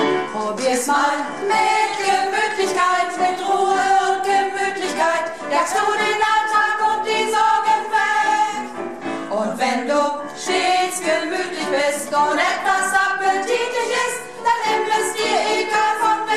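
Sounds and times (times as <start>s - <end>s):
soprano singing at rehearsal: 0.1s - 16.3s.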